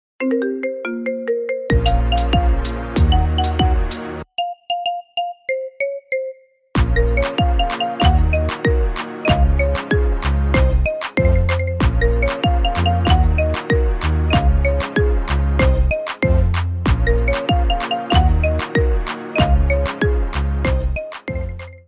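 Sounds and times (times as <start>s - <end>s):
marimba: 0.2s - 21.8s.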